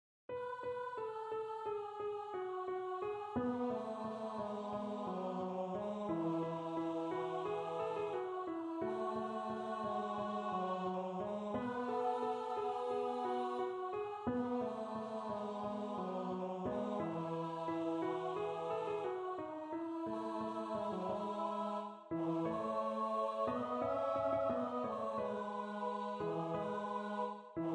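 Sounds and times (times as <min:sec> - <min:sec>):
two part mixed treble choir singing: 0:00.3 - 0:27.7.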